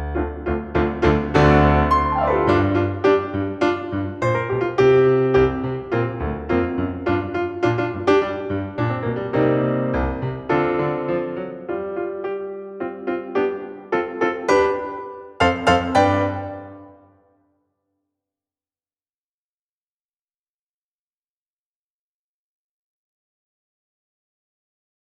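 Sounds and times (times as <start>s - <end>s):
instrumental accompaniment in E-flat: 0.1s - 17.2s.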